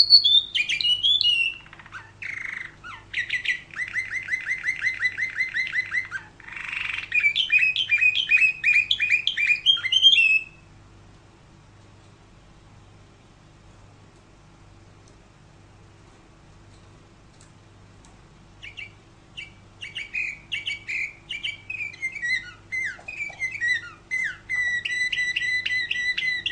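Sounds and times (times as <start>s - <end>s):
canary giving sharp chirps: 0.0s - 10.8s, 18.6s - 26.4s.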